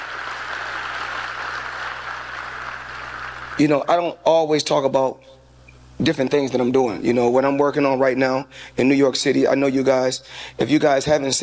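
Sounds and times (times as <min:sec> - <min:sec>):
audience clapping: 0:00.0 - 0:03.9
speech: 0:03.6 - 0:05.4, 0:06.0 - 0:11.4.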